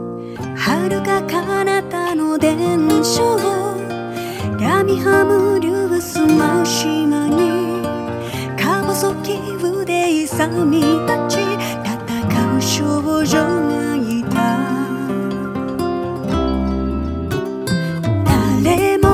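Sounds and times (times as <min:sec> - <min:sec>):
minstrel song as background music: 0:00.1 - 0:19.1.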